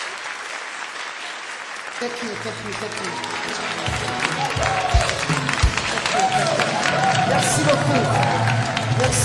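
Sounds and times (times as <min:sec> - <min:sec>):
crowd applause: 0:00.0 - 0:09.2
speech: 0:02.0 - 0:05.3, 0:06.1 - 0:09.2
shouts and cheering voices: 0:02.4 - 0:09.2.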